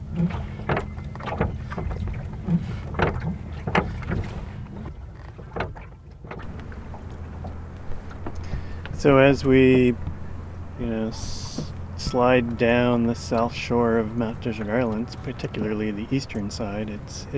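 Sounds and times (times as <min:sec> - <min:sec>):
bell buoy ringing: 0:00.0 - 0:02.5, 0:06.5 - 0:17.3
rowing a small boat on water: 0:00.0 - 0:17.3
speech: 0:09.0 - 0:10.1, 0:10.8 - 0:11.4, 0:12.1 - 0:17.3.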